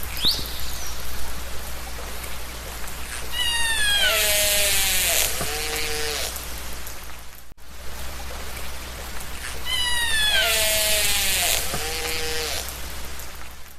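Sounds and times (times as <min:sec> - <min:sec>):
low underwater hum: 0:00.0 - 0:13.6
orca calls: 0:03.1 - 0:06.4, 0:09.4 - 0:12.7.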